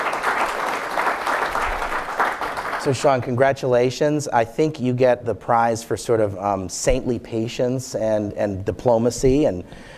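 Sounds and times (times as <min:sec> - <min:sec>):
audience applause: 0:00.0 - 0:03.2
speech: 0:02.8 - 0:09.9.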